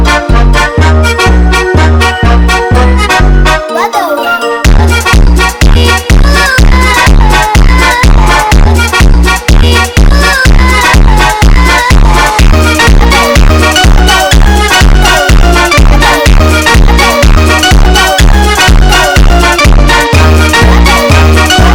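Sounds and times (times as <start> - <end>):
Brazilian funk do bounce music: 0.0 - 21.7.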